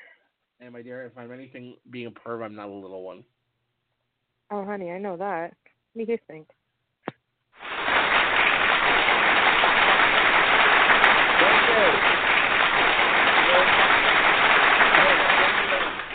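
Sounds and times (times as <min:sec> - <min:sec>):
speech: 0:00.6 - 0:03.4, 0:04.5 - 0:06.6
applause: 0:07.6 - 0:16.1.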